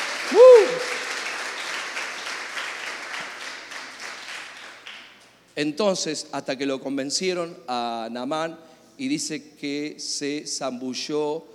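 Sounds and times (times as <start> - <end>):
audience applauding: 0.0 - 5.2
speech: 5.6 - 11.5.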